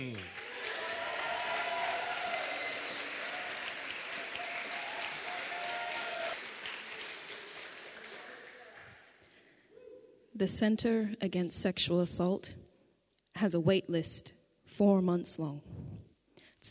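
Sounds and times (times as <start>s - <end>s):
audience applause: 0.0s - 9.2s
speech: 10.4s - 12.6s, 13.4s - 15.8s.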